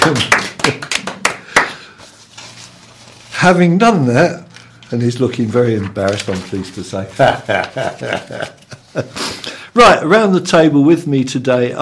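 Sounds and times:
round of applause: 0:00.0 - 0:01.8
speech: 0:00.1 - 0:00.9, 0:03.4 - 0:11.8.

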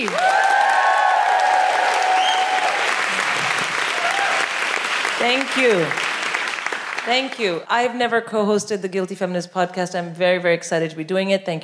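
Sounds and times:
audience applause at a live comedy show: 0:00.0 - 0:07.4
speech: 0:05.2 - 0:06.1, 0:07.1 - 0:11.6.

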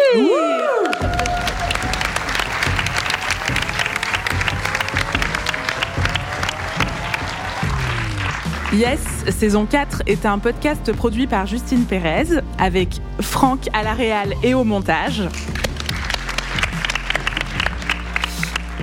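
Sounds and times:
audience applause: 0:00.2 - 0:09.2, 0:15.4 - 0:18.8
speech: 0:08.7 - 0:15.6.

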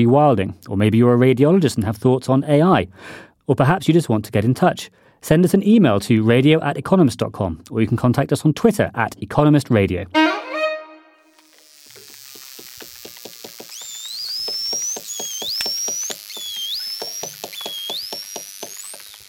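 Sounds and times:
speech: 0:00.0 - 0:10.2
bottlenose dolphin squeaks, chirps and whistles: 0:13.7 - 0:19.2.

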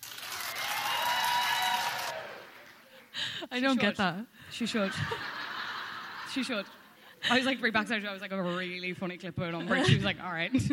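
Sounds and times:
audience clapping: 0:00.0 - 0:03.2
speech: 0:03.5 - 0:05.4, 0:06.3 - 0:10.7
laughter: 0:04.6 - 0:07.6.

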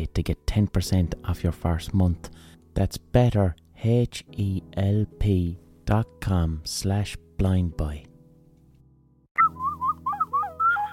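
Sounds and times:
speech: 0:00.0 - 0:08.1
high-pitched ocarina playing: 0:09.4 - 0:10.9.

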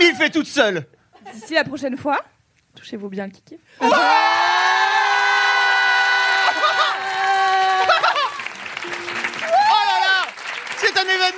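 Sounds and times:
speech: 0:00.0 - 0:04.7
crowd cheering and applauding: 0:03.8 - 0:11.3
laughter: 0:06.3 - 0:08.6.

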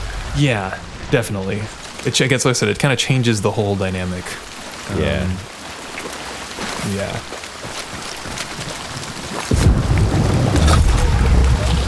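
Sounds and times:
speech: 0:00.4 - 0:06.2, 0:06.8 - 0:07.4
thunder in a video game: 0:09.5 - 0:11.8.

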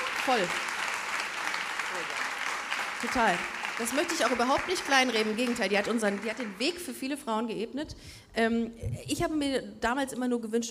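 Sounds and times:
live audience applause: 0:00.0 - 0:07.1
speech: 0:00.2 - 0:00.7, 0:01.9 - 0:02.3, 0:03.0 - 0:10.7.

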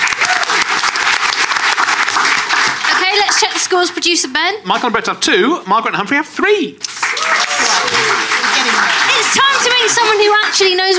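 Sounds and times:
round of applause: 0:00.0 - 0:03.8, 0:06.8 - 0:10.9
speech: 0:03.3 - 0:07.4, 0:09.2 - 0:10.9.

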